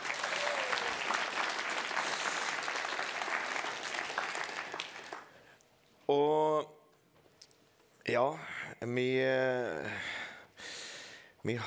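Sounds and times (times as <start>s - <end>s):
audience applause: 0.0s - 5.4s
speech: 6.1s - 6.8s, 8.0s - 10.2s, 11.4s - 11.6s.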